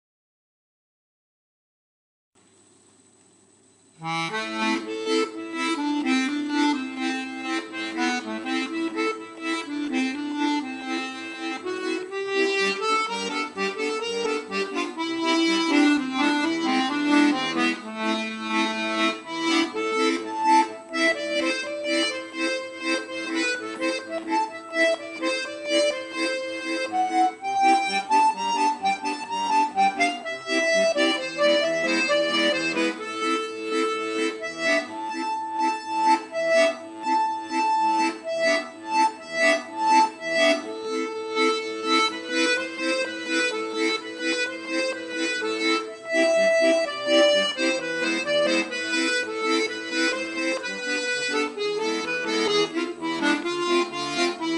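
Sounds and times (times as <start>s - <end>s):
traditional klezmer music: 4.0s - 54.5s.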